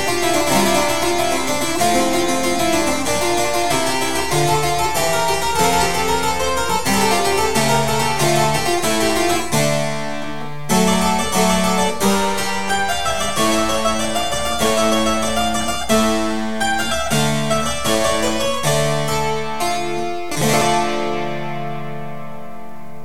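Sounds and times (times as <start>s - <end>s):
harpsichord: 0.0s - 23.0s.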